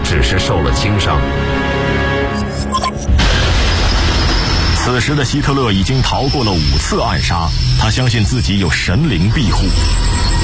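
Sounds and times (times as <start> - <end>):
speech: 0.1 - 2.0, 4.9 - 10.3
bomb explosion: 3.1 - 7.8.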